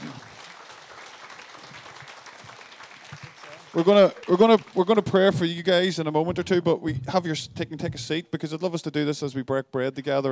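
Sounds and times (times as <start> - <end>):
audience applause: 0.0 - 5.6
speech: 3.7 - 10.3.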